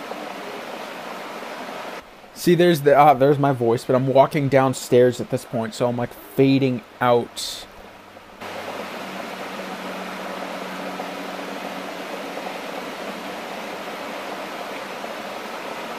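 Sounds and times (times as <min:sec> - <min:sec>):
rain outside: 0:00.0 - 0:15.9
speech: 0:02.4 - 0:07.7
traffic outside: 0:07.8 - 0:15.9.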